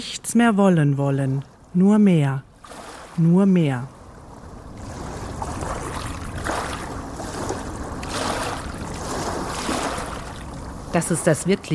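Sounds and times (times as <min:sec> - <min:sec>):
speech: 0:00.0 - 0:02.5, 0:03.2 - 0:04.0, 0:10.9 - 0:11.7
waves dragging pebbles and sand on shore: 0:02.6 - 0:11.7.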